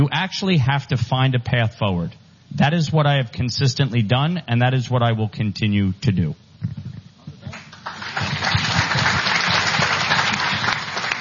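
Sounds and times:
speech: 0.0s - 6.8s
audience applause: 7.5s - 11.1s.

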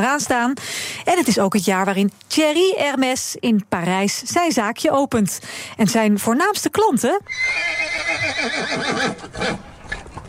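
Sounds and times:
speech: 0.0s - 9.7s
horse neighing: 7.3s - 10.2s.

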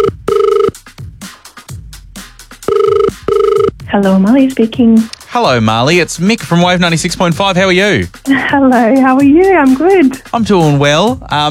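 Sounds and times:
telephone ringing down the line: 0.0s - 0.7s, 2.7s - 3.7s
speech: 3.9s - 11.5s.

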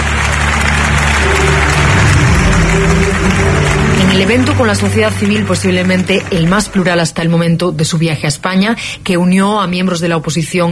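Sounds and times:
crowd ovation, sustained applause: 0.0s - 7.4s
speech: 4.3s - 10.7s.

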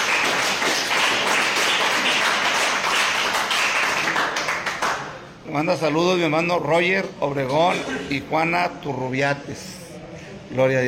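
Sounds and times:
audience applause: 0.0s - 5.2s
speech: 5.5s - 9.8s, 10.5s - 10.8s.

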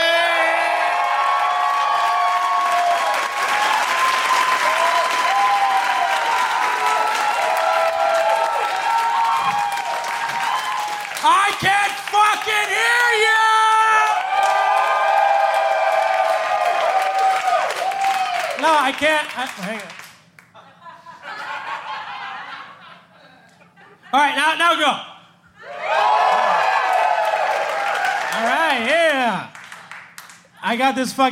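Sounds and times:
audience applause: 0.4s - 13.2s, 13.9s - 20.2s, 25.9s - 28.9s, 29.5s - 30.4s
speech: 18.6s - 20.0s, 24.2s - 25.1s, 30.7s - 31.3s
laughter: 20.5s - 24.2s.

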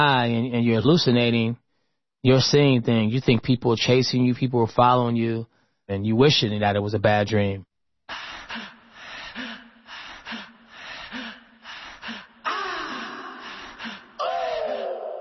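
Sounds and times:
speech: 0.0s - 1.6s, 2.2s - 8.7s
heavy panting breaths in a song: 8.1s - 14.6s.

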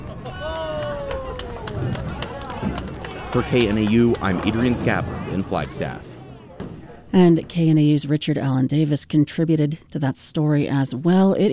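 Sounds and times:
family applauding at bowling alley: 0.0s - 6.2s
speech: 3.3s - 6.1s, 7.1s - 11.5s.

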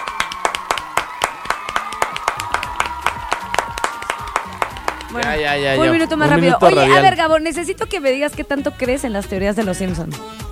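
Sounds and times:
audience clapping: 0.0s - 6.7s
speech: 5.1s - 10.4s.

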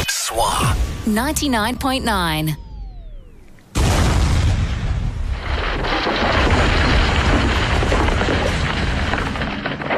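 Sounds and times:
speech: 0.3s - 2.6s
blasting powder explosion blowing up a windmill: 3.8s - 9.9s.

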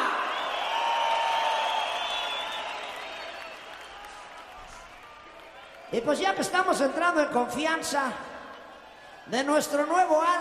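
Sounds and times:
audience applause and cheering at concert: 0.0s - 6.2s
speech: 5.9s - 8.3s, 9.3s - 10.3s.

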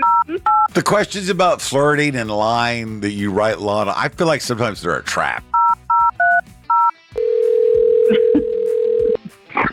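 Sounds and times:
telephone keypad two-tone beeps: 0.0s - 0.7s
speech: 0.8s - 5.5s
steady telephone tone as a call connects: 6.8s - 9.2s.

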